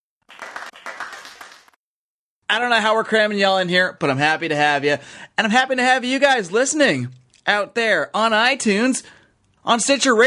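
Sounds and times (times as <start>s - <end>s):
studio audience applause: 0.2s - 1.8s
speech: 2.5s - 10.2s.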